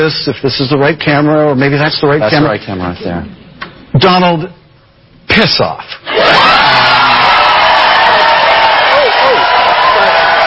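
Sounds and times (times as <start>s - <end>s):
speech: 0.0s - 3.4s, 4.0s - 4.6s, 5.3s - 6.9s
crowd cheering: 6.0s - 10.4s.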